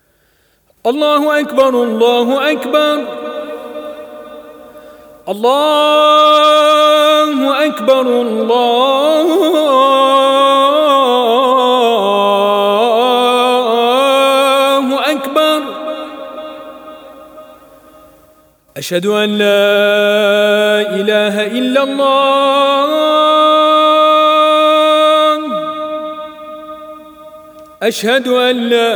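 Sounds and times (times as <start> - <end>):
Azan call to prayer: 0.8 - 28.9.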